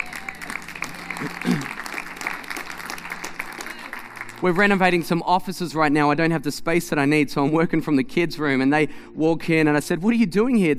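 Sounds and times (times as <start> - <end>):
audience clapping: 0.0 - 5.3
speech: 1.2 - 1.7, 4.4 - 10.7.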